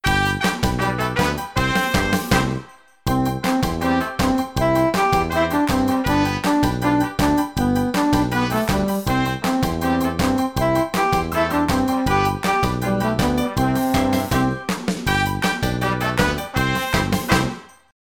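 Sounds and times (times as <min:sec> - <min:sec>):
backing track: 0:00.0 - 0:17.8.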